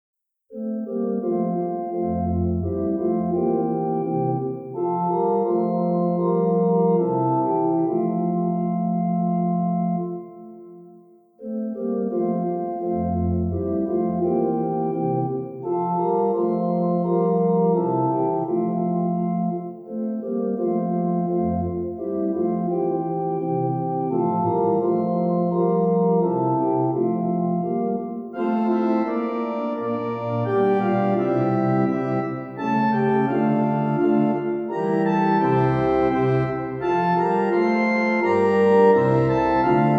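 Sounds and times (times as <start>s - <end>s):
organ: 0.5s - 10.8s, 11.4s - 39.9s.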